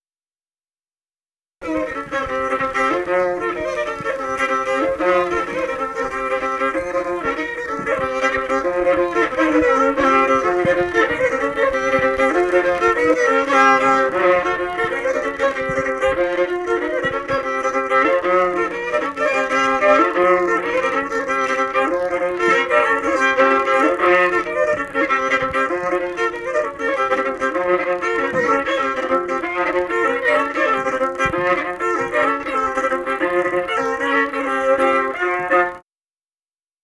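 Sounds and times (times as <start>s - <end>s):
folk dance tune played on lower strings in Kulnevo: 1.6s - 35.8s.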